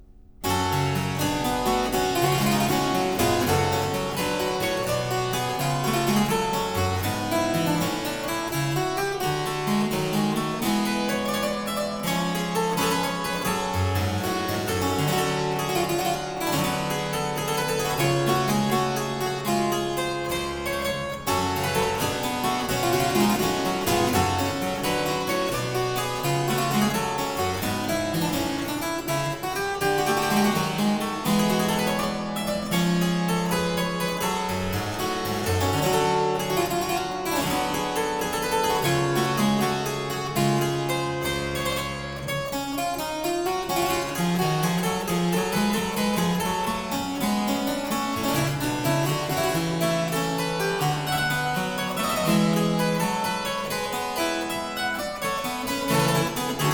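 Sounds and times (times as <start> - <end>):
harpsichord gigue in G minor: 0.0 - 56.7.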